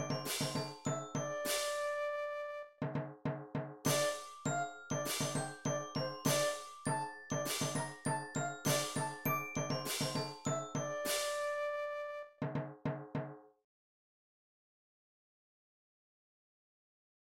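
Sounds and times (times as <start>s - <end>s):
drums: 0.0s - 2.1s, 2.8s - 11.7s, 12.3s - 13.4s.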